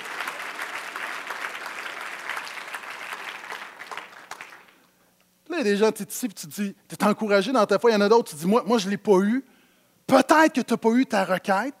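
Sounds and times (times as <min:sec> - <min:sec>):
audience applause: 0:00.0 - 0:04.8
speech: 0:05.6 - 0:09.5, 0:10.1 - 0:11.7.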